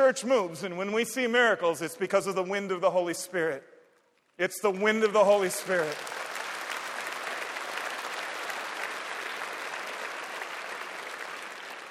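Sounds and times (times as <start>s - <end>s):
speech: 0.1s - 3.7s, 4.4s - 6.2s
audience clapping during a sermon: 4.2s - 11.9s.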